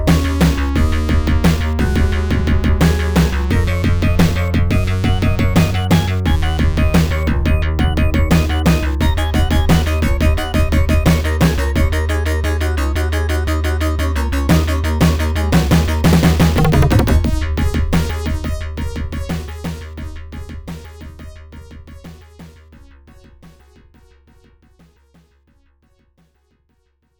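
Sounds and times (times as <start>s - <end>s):
techno tune: 0.0s - 19.4s.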